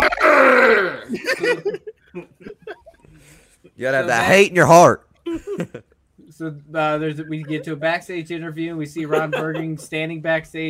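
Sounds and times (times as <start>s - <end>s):
person growling: 0.0s - 1.2s
laughter: 1.1s - 3.1s, 7.1s - 7.8s, 9.0s - 10.0s
speech: 3.8s - 5.0s, 6.4s - 10.6s.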